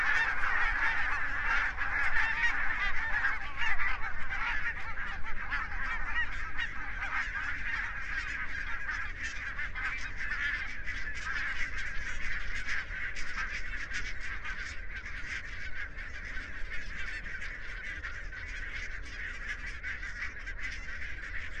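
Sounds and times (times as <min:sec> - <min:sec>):
barnacle goose calling: 0:00.0 - 0:21.5.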